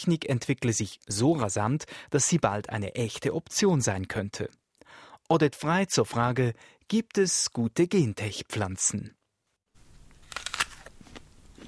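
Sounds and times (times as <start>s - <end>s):
speech: 0.0s - 4.6s, 5.3s - 9.2s
person biting into a Gala apple: 10.0s - 11.6s.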